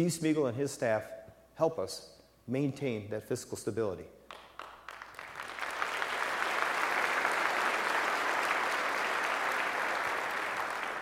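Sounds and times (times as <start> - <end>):
speech: 0.0 - 4.2
crowd applause: 4.3 - 11.0.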